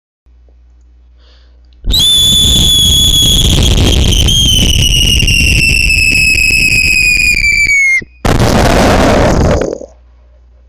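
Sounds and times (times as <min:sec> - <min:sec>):
nuclear explosion: 0:01.9 - 0:09.8.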